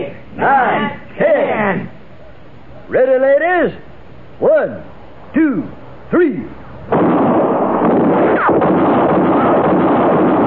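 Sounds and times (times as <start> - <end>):
speech: 0.4 - 1.0, 2.9 - 7.2
gunshot sound effect for a radio drama: 6.9 - 10.4.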